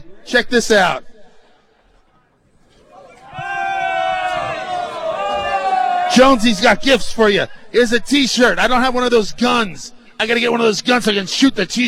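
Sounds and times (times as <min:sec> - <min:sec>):
speech: 0:00.3 - 0:01.1, 0:06.1 - 0:11.8
crowd shouting and babbling: 0:01.6 - 0:07.6
crowd roaring: 0:02.7 - 0:07.2.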